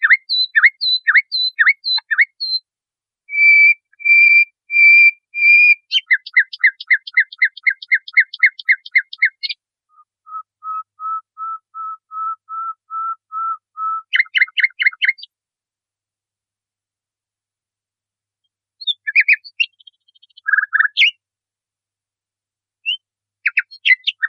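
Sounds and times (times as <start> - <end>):
nightingale singing: 0.0 - 2.6, 3.3 - 15.3, 18.8 - 21.2, 22.8 - 24.2.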